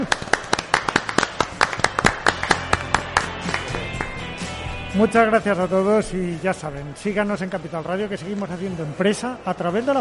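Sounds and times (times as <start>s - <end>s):
small group applauding: 0.0s - 4.3s
speech: 5.0s - 9.9s.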